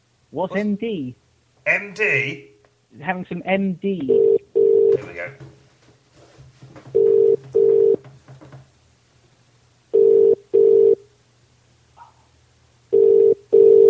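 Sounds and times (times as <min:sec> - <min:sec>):
speech: 0:00.3 - 0:04.4, 0:05.0 - 0:05.6
telephone ringing in a public phone box: 0:04.1 - 0:05.4, 0:06.9 - 0:08.0, 0:09.9 - 0:11.0, 0:12.9 - 0:13.8.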